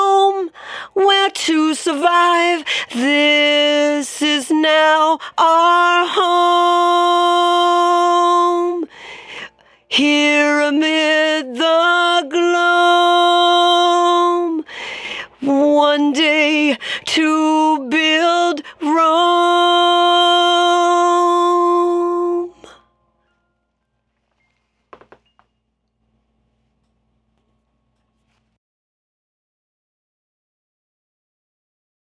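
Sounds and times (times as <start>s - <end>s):
lead vocals: 0.0s - 22.9s.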